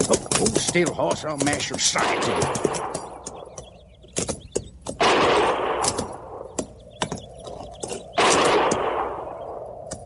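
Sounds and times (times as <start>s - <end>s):
speech: 0.4s - 3.1s
gunfire in the hills: 1.8s - 3.3s, 5.0s - 6.6s, 8.2s - 9.6s.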